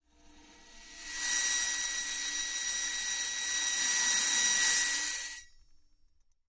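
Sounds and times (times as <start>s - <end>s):
bowed cymbal: 0.2s - 5.7s.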